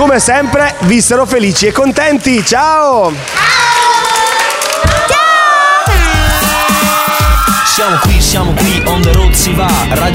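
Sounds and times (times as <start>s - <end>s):
speech: 0.1s - 3.7s, 7.8s - 10.1s
children applauding: 2.0s - 8.0s.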